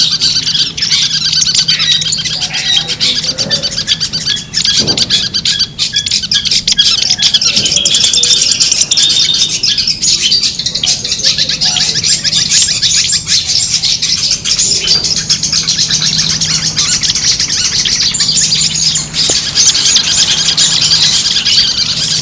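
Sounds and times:
long-tailed shrike singing in a songbird contest simulation: 0:00.0 - 0:22.2.

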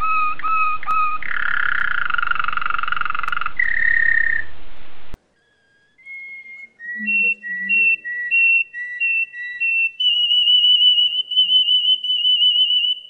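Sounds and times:
Waterslager canary singing: 0:00.0 - 0:13.0.

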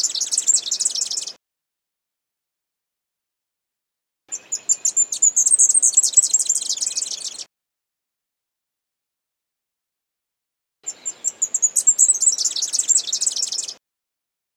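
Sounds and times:
leaf warbler song of quick chirps building into a fast trill: 0:00.0 - 0:01.4, 0:04.3 - 0:07.5, 0:10.9 - 0:13.8.

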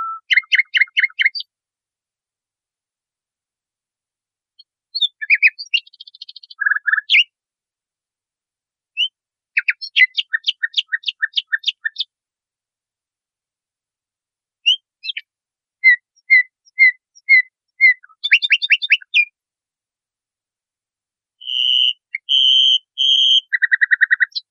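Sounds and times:
nightingale singing: 0:00.0 - 0:01.5, 0:04.6 - 0:07.3, 0:09.0 - 0:12.1, 0:14.6 - 0:19.4, 0:21.4 - 0:24.4.

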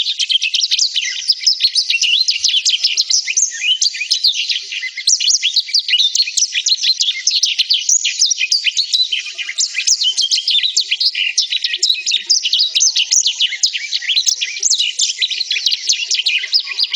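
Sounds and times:
black-throated canary warbling song: 0:00.0 - 0:16.9.

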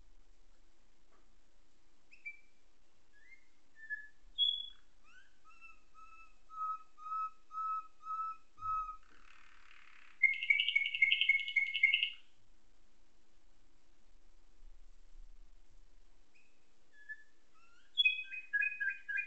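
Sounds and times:
Atlantic canary singing nightingale-tutored song: 0:02.1 - 0:12.3, 0:16.3 - 0:19.2.

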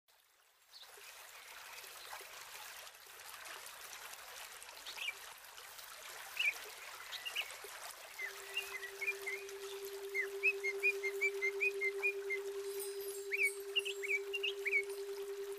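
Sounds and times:
female Oriental magpie-robin whistles and ciam calls: 0:08.2 - 0:15.5.

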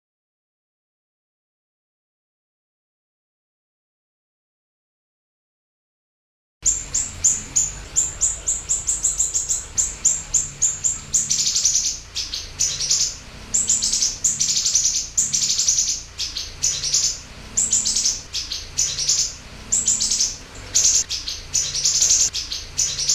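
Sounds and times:
Eurasian tree sparrow chirps: 0:06.6 - 0:23.1.

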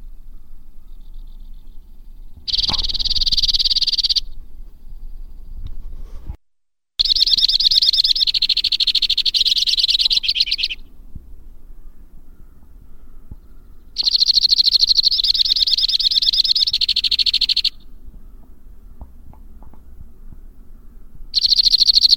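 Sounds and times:
white-winged crossbill delivering rapid high rattling trills: 0:00.0 - 0:05.6, 0:07.0 - 0:22.1.

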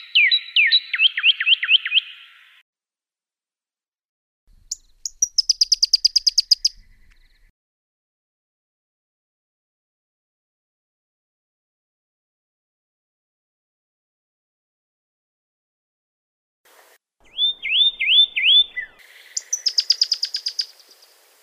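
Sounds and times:
Pyrrhuloxia song with downslurred whistles and rapid trill: 0:00.0 - 0:02.6, 0:04.7 - 0:07.4, 0:17.3 - 0:21.1.

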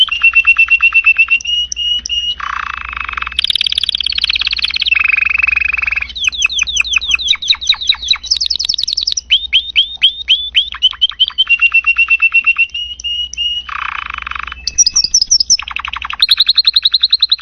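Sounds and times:
Spanish Timbrado canary: 0:00.0 - 0:17.4.

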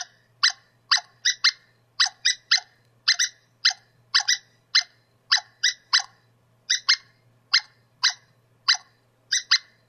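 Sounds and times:
squirrel calling with harsh sharp notes: 0:00.0 - 0:09.8.

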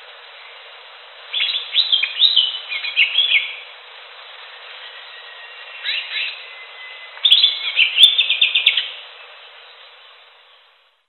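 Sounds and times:
Greater green leafbird song of rapid chirps and slurred whistles: 0:01.3 - 0:03.6, 0:04.7 - 0:09.0.

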